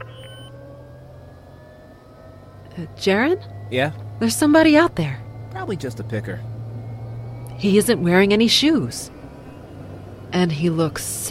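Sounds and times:
aircraft engine droning as the plane taxis: 0.0 - 11.2
speech: 2.8 - 6.5, 7.6 - 9.2, 10.3 - 11.2.

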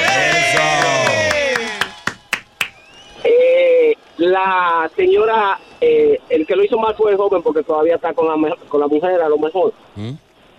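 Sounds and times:
audience applause: 0.0 - 3.3
speech: 4.4 - 10.2.

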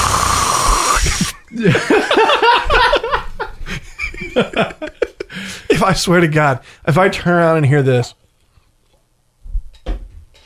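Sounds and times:
drag on a vape pen: 0.0 - 1.4, 5.3 - 5.7
people giggling and laughing: 1.1 - 5.4
speech: 1.6 - 1.9, 5.8 - 8.2.

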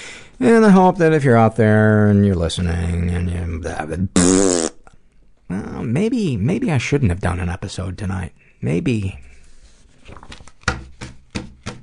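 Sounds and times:
speech: 0.4 - 4.7, 5.5 - 9.3
papers shuffling: 9.3 - 11.8.

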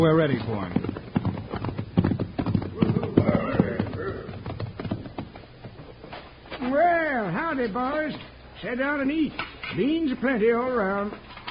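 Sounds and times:
speech: 0.0 - 1.1, 7.6 - 11.3
horses' hooves as riders approach: 0.0 - 8.4.

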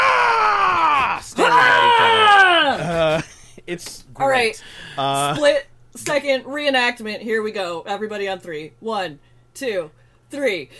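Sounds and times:
voices imitating a barbarian scream: 0.0 - 3.0
speech: 3.7 - 10.7.

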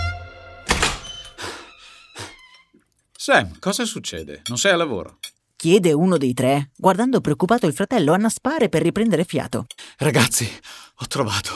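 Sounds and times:
door opening: 0.0 - 2.8
speech: 3.2 - 11.5.

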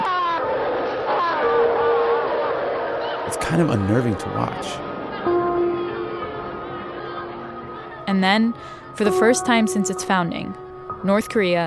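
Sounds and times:
crowd crying and wailing at funeral: 0.0 - 9.0
speech: 3.4 - 4.9, 8.1 - 11.6.

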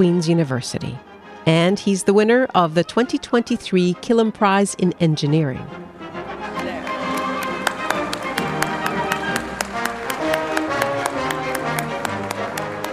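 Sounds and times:
speech: 0.0 - 5.9
audience applause: 6.5 - 12.9.

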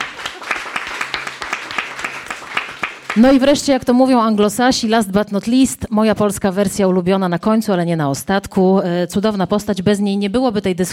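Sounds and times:
audience applause: 0.0 - 3.6
speech: 3.2 - 10.9.

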